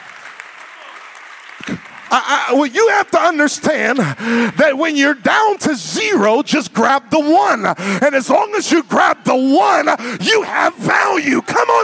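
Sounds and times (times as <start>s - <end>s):
audience clapping: 0.0s - 4.6s
speech: 1.6s - 11.8s.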